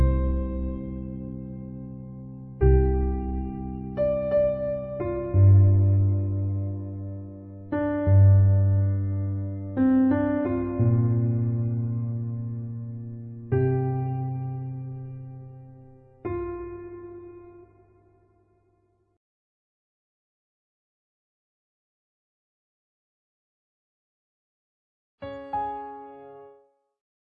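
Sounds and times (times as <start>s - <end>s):
easy piano: 0.0s - 18.1s, 25.2s - 26.7s.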